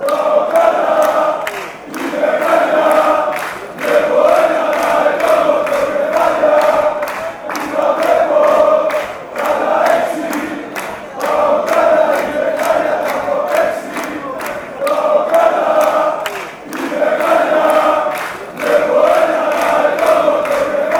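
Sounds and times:
fans chanting: 0.0 - 20.9.

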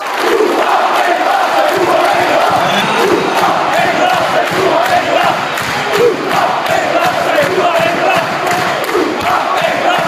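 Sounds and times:
people chanting ooh aah: 0.0 - 10.0.

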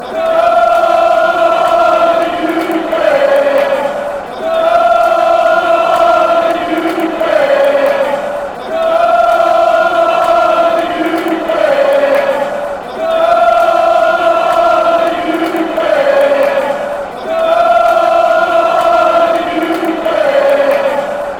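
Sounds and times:
football fans chanting: 0.0 - 21.3.

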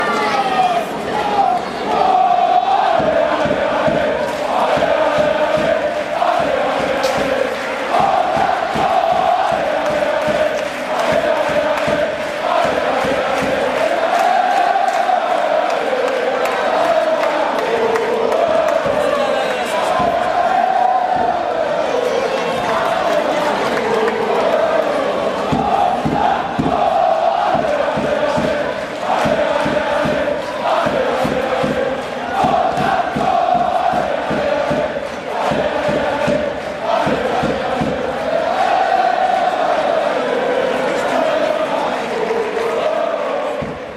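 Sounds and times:
crowd chanting: 0.0 - 43.9.

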